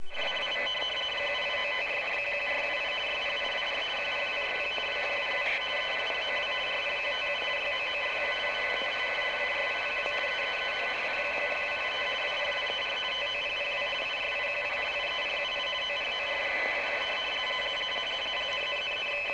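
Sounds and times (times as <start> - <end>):
RTTY radioteletype signal without preselector: 0.0 - 19.3.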